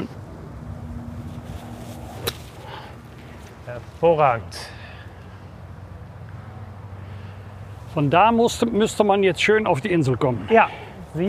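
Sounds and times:
golf club striking a golf ball in a trick shot near a tree: 0:02.1 - 0:02.7
speech: 0:03.7 - 0:04.8, 0:08.0 - 0:11.2.

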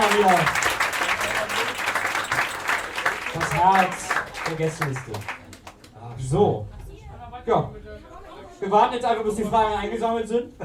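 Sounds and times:
audience clapping for an organiser at a live German event: 0:00.0 - 0:06.0
speech: 0:00.2 - 0:00.7, 0:03.6 - 0:05.4, 0:06.2 - 0:06.8, 0:07.4 - 0:07.8, 0:08.6 - 0:10.6.

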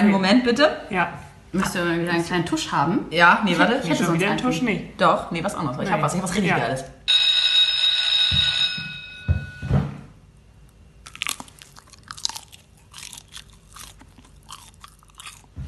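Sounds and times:
speech: 0:00.0 - 0:07.2
ringing tone: 0:07.1 - 0:10.0
chewing of slightly mushy food: 0:11.0 - 0:15.6.

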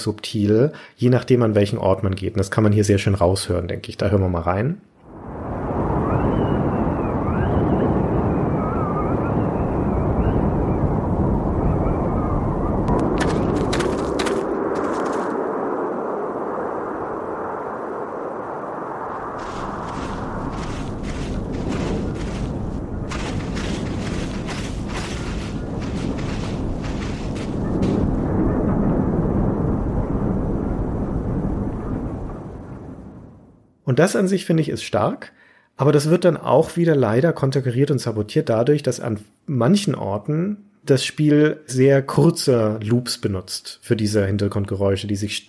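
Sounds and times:
speech: 0:00.0 - 0:04.9, 0:34.0 - 0:45.4
howling wind across a plain: 0:05.0 - 0:33.7.

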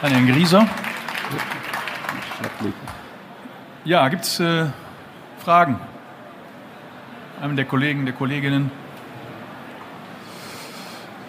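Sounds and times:
speech: 0:00.0 - 0:01.6, 0:02.4 - 0:03.0, 0:03.8 - 0:04.8, 0:05.4 - 0:05.9, 0:07.4 - 0:08.8
audience applause: 0:00.0 - 0:03.2.

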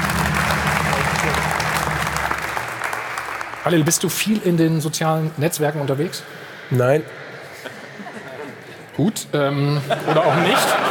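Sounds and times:
audience applause: 0:00.0 - 0:04.7
speech: 0:03.6 - 0:07.2, 0:09.0 - 0:10.8
laughter: 0:07.5 - 0:10.8.

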